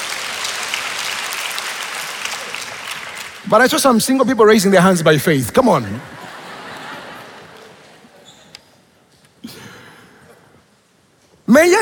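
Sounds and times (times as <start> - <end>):
audience clapping for couples: 0.0 - 3.9
speech: 3.5 - 6.2
laughter: 5.9 - 8.2.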